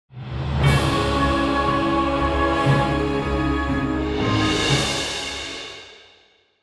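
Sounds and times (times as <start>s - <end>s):
musical stinger: 0.6s - 5.8s.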